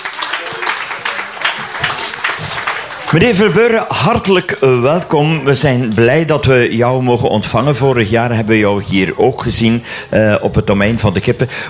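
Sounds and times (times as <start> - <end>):
audience applause at an outdoor family radio summer event: 0.0 - 6.7
crowd voices: 0.0 - 11.6
speech: 3.1 - 11.6.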